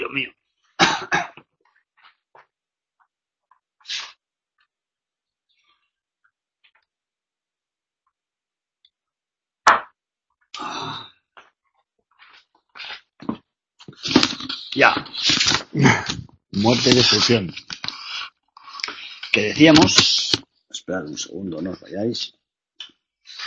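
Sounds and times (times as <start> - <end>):
speech: 0.1 - 0.4, 14.8 - 17.6, 19.3 - 20.3, 20.9 - 22.4
person coughing: 0.8 - 1.4.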